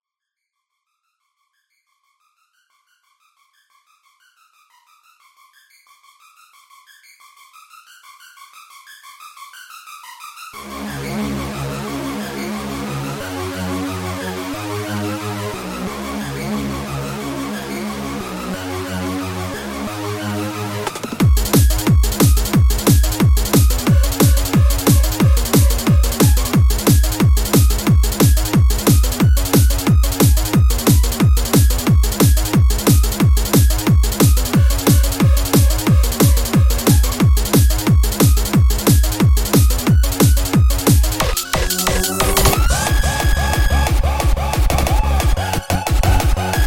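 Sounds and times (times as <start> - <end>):
angelic hardstyle music: 10.6 - 46.6.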